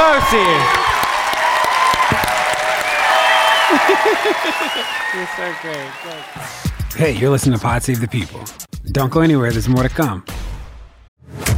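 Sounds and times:
audience applause for a speaker: 0:00.0 - 0:07.2
speech: 0:00.2 - 0:00.8, 0:03.9 - 0:10.4
laughter: 0:03.4 - 0:06.5.

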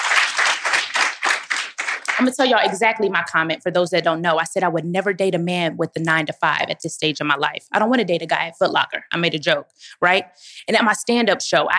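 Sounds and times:
people clapping: 0:00.0 - 0:02.8
speech: 0:02.2 - 0:11.7.

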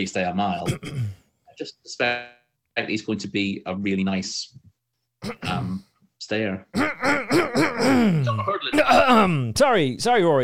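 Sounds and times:
speech: 0:00.0 - 0:04.6, 0:05.2 - 0:10.4
throat clearing: 0:00.6 - 0:01.2, 0:05.2 - 0:05.9, 0:06.7 - 0:09.2.

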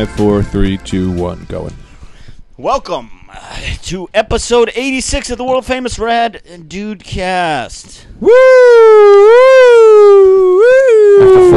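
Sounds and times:
speech: 0:00.0 - 0:01.8, 0:02.6 - 0:11.5
voice imitating an ambulance siren: 0:08.3 - 0:11.5.

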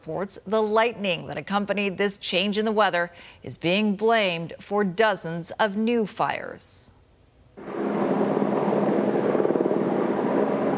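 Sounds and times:
speech: 0:00.0 - 0:06.9
firefighting helicopters bucketing hotspots over wildfire near Kokanee Creek Provincial Park: 0:07.6 - 0:10.7.

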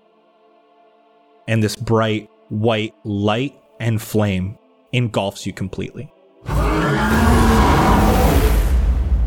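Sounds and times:
speech: 0:01.5 - 0:06.2
loud monster roar: 0:06.5 - 0:09.1.

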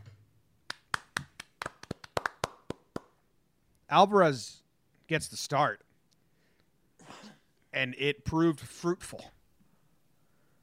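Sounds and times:
person clapping hands: 0:00.7 - 0:03.2
speech: 0:03.9 - 0:05.8, 0:07.8 - 0:09.4.

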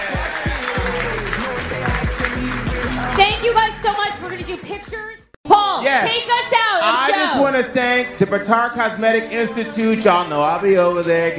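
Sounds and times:
crowd applause: 0:00.0 - 0:04.5
speech: 0:03.5 - 0:05.2, 0:05.8 - 0:11.3.

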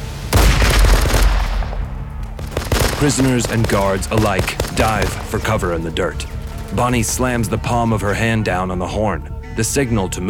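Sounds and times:
machine gun fire: 0:00.4 - 0:05.7
speech: 0:03.0 - 0:10.2.

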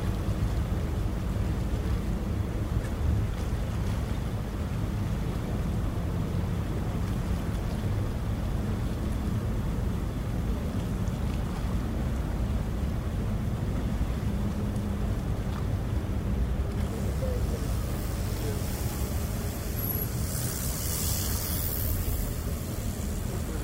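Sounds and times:
ferry engine drone on Sydney Harbour: 0:00.0 - 0:23.6
thin bright hiss: 0:18.1 - 0:23.4.

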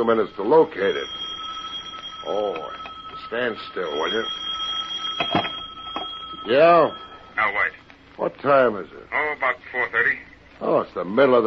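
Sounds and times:
speech: 0:00.0 - 0:01.2, 0:02.2 - 0:04.5, 0:06.4 - 0:11.4
telephone ringing: 0:00.0 - 0:07.9.

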